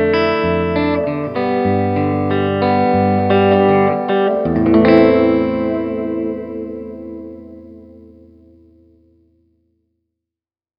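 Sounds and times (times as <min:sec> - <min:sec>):
clean electric guitar: 0:00.0 - 0:09.5.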